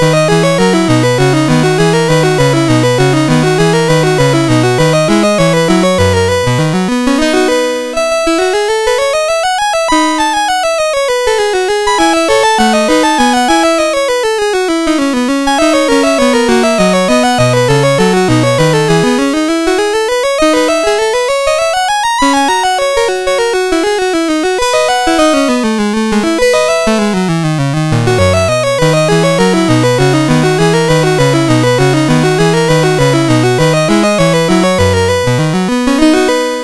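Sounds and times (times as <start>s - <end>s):
courante on MOS6581R4 sound chip: 0.0s - 36.6s.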